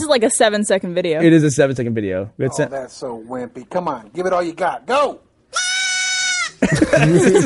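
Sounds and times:
speech: 0:00.1 - 0:05.6, 0:06.6 - 0:07.4
goat bleating weakly: 0:05.5 - 0:06.6
laughter: 0:06.5 - 0:07.4.

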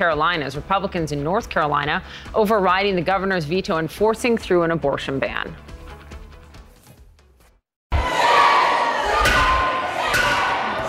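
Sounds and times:
speech: 0:00.0 - 0:05.7
protesters shouting at lawmakers: 0:08.0 - 0:10.8.

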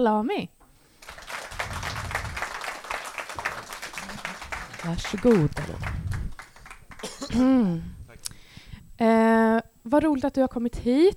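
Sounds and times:
speech: 0:00.0 - 0:00.6, 0:04.8 - 0:06.1, 0:07.3 - 0:08.0, 0:09.0 - 0:11.1
warm audience applause: 0:01.0 - 0:07.2.

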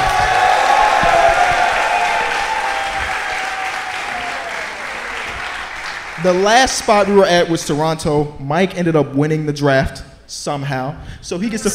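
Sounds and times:
audience applause: 0:00.0 - 0:07.5
speech: 0:06.2 - 0:11.7.

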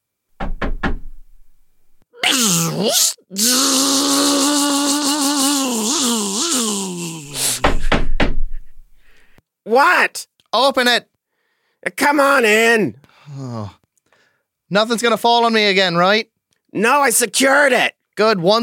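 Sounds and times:
knocking on a door: 0:00.4 - 0:01.4, 0:07.6 - 0:08.8
wavering moaning groan: 0:02.2 - 0:07.7, 0:13.2 - 0:13.8
speech: 0:02.4 - 0:03.5, 0:09.8 - 0:11.1, 0:11.8 - 0:13.8, 0:14.7 - 0:18.6.

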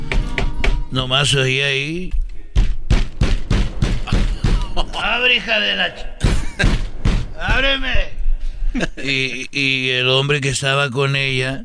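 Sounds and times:
speech: 0:00.9 - 0:02.2, 0:04.8 - 0:06.8, 0:07.4 - 0:11.6
knocking on a door: 0:02.6 - 0:04.8, 0:06.2 - 0:07.7
laughter: 0:04.1 - 0:05.3, 0:06.2 - 0:07.0, 0:08.7 - 0:09.6.

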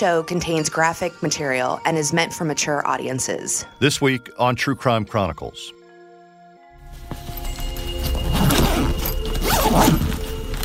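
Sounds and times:
speech: 0:00.0 - 0:05.8, 0:09.7 - 0:10.2
bags rustling as a family packs quickly: 0:06.8 - 0:10.6
bags being zipped up: 0:08.0 - 0:10.6.

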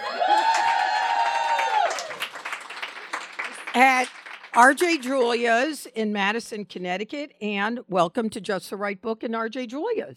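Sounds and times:
crowd shouts and cheers at an author event in RJ Julia's bookstore: 0:00.0 - 0:02.2
high sustained whoop from a crowd at RJ Julia's bookstore in Madison, Connecticut: 0:00.0 - 0:02.2
speech: 0:03.8 - 0:10.1.

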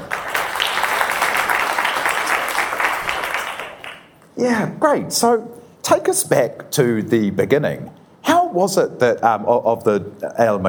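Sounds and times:
audience applause welcoming a guest at a business school talk: 0:00.0 - 0:04.1
speech: 0:04.4 - 0:10.6.

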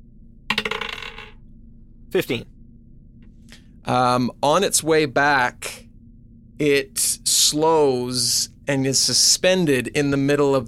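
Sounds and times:
twenty-sided die being rolled: 0:00.5 - 0:01.4
speech: 0:02.1 - 0:02.5, 0:03.8 - 0:05.8, 0:06.6 - 0:10.6.

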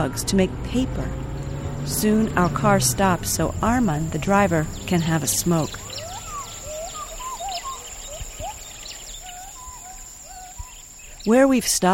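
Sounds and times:
speech: 0:00.0 - 0:01.2, 0:01.8 - 0:05.8, 0:11.2 - 0:11.9
gibbons calling in a distant stand of forest: 0:02.0 - 0:11.3.

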